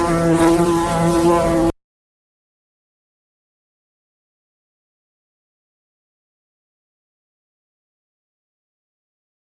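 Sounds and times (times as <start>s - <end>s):
Western honey bee Apis mellifera buzzing: 0.0s - 1.7s.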